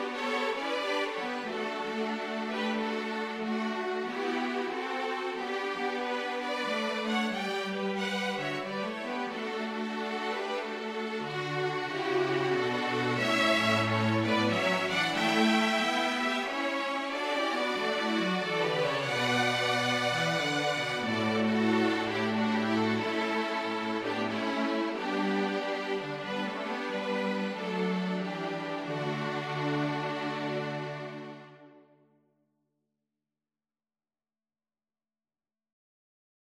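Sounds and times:
string quartet playing jazz carol: 0.0 - 31.7.

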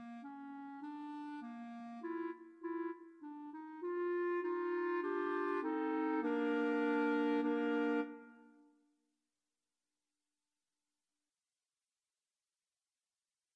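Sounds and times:
clarinet trio: 0.0 - 8.7.

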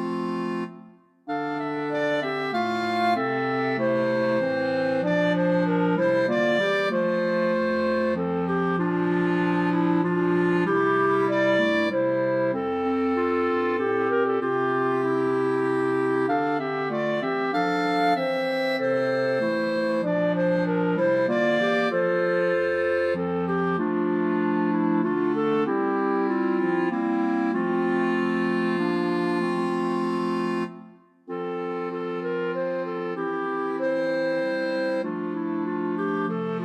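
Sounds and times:
clarinet quartet playing: 0.0 - 36.6.

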